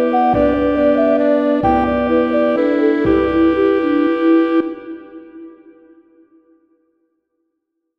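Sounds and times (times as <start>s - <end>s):
oboe melody: 0.0s - 6.1s.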